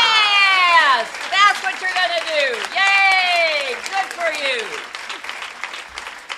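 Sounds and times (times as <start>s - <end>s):
people whooping and shouting: 0.0s - 5.2s
audience applause: 0.0s - 6.3s.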